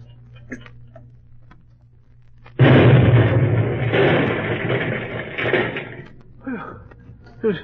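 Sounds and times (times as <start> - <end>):
rumbling, crackling debris noise: 2.2 - 6.7
bomb exploding in a yard, radio drama effect: 2.6 - 6.2.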